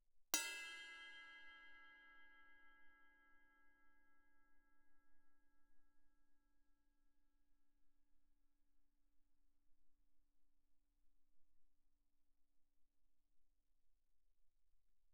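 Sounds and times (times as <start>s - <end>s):
stick striking crash cymbal bell medium loud: 0.4s - 3.2s.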